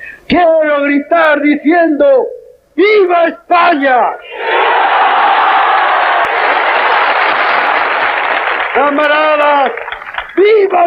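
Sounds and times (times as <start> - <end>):
speech: 0.3 - 4.6, 8.8 - 10.8
crowd applauding and cheering after speech: 4.6 - 10.6.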